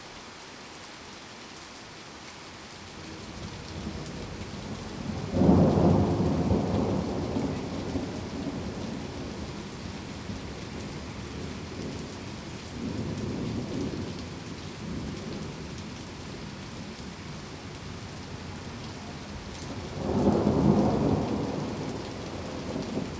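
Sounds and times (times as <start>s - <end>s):
calming rain: 0.0s - 23.1s
thunder: 5.0s - 9.5s, 19.7s - 23.1s.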